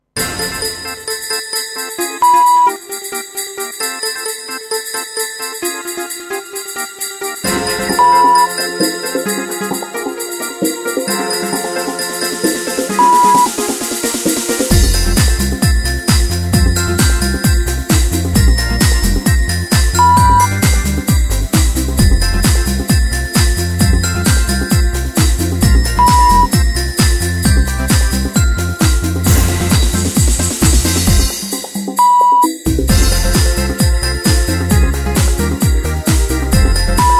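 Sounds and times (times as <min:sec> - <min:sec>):
Christmas club dance music: 0:00.2 - 0:37.1.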